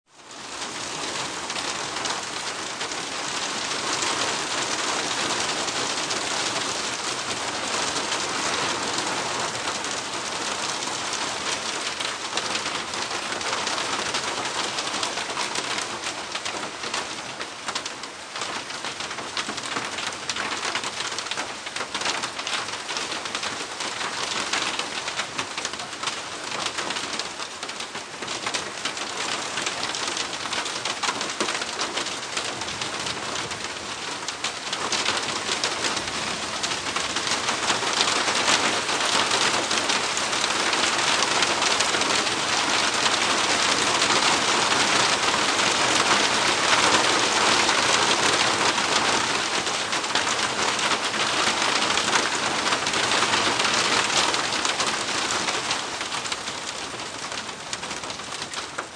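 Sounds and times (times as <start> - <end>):
dawn rain in Australia: 0.1 - 58.9.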